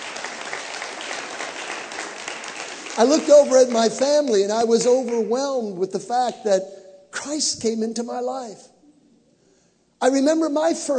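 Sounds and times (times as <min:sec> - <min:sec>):
audience applause at a church gathering: 0:00.0 - 0:04.5
speech: 0:03.0 - 0:08.7, 0:10.0 - 0:10.9.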